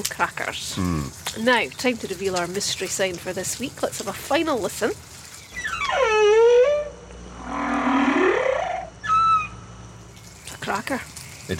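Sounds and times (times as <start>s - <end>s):
speech: 0.0s - 5.1s, 10.9s - 11.5s
humpback whale singing: 5.5s - 9.8s.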